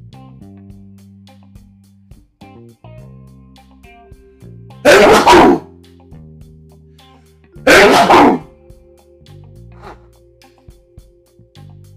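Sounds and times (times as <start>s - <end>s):
sneezes from allergies: 4.9s - 5.6s, 7.7s - 8.5s.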